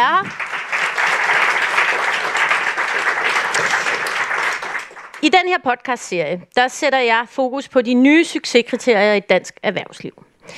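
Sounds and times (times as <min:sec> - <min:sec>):
audience applause: 0:00.0 - 0:05.3
speech: 0:05.2 - 0:10.5.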